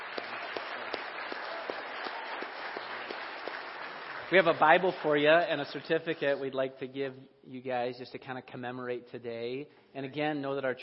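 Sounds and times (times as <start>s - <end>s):
audience applause: 0.0s - 5.8s
speech: 4.3s - 10.8s.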